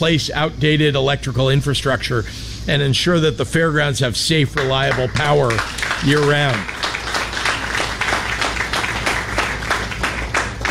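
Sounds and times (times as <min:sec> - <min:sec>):
speech: 0:00.0 - 0:06.8
crowd applause: 0:04.6 - 0:10.6.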